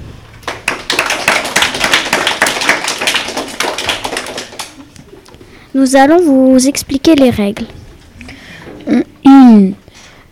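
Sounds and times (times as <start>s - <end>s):
audience applause: 0.4s - 5.0s
speech: 5.8s - 7.8s, 8.9s - 9.8s.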